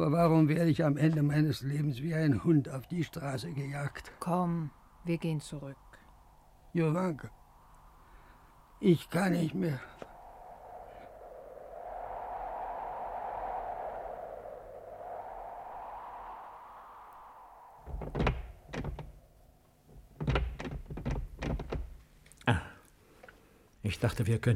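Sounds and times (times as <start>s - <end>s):
speech: 0.0s - 5.8s, 6.8s - 7.4s, 8.8s - 10.1s, 23.9s - 24.5s
low hum: 2.9s - 19.6s
locked temple door being tried and rattled: 20.2s - 22.0s.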